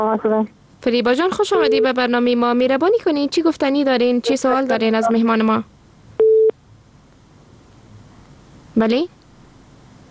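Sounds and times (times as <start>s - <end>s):
speech: 0.0s - 5.7s, 8.8s - 9.2s
telephone busy tone after a radio phone-in caller's line drops: 6.2s - 6.5s.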